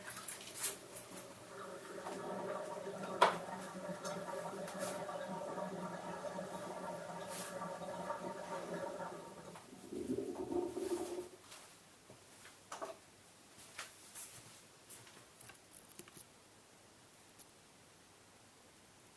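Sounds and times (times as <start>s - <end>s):
washing up dishes: 0.0s - 11.4s.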